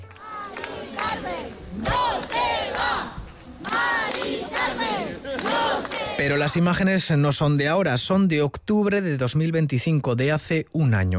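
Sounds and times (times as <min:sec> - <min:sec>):
protesters clapping: 0:00.0 - 0:06.8
crowd of protesters cheering and shouting: 0:00.2 - 0:06.2
speech: 0:06.3 - 0:11.1.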